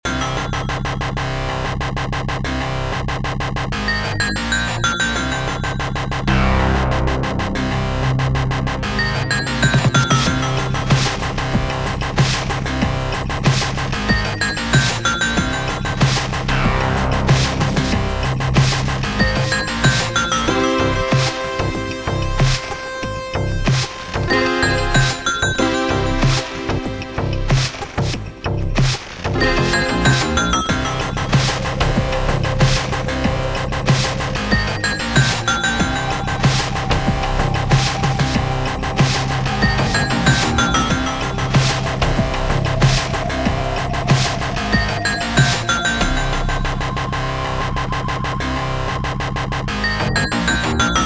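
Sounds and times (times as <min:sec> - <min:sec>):
music story sequence: 0:00.0 - 0:51.0.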